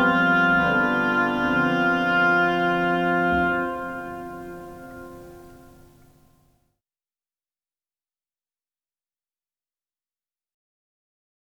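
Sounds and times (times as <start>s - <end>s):
oboe playing variations: 0.0s - 6.2s.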